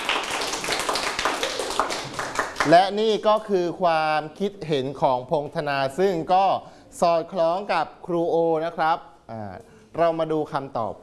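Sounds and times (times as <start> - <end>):
students in a literature class clapping: 0.0 - 3.2
speech: 2.6 - 11.0.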